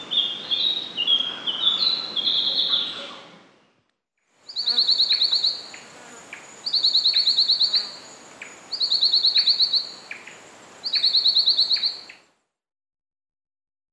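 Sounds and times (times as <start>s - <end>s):
Lemon-bellied flyrobin calling in Papua New Guinea: 0.1s - 3.1s, 4.5s - 12.2s.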